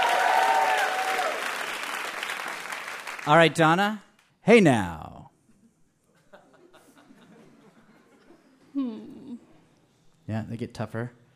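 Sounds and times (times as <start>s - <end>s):
audience applause: 0.0s - 3.6s
speech: 3.2s - 5.1s, 10.3s - 11.2s
laughter: 6.1s - 9.3s.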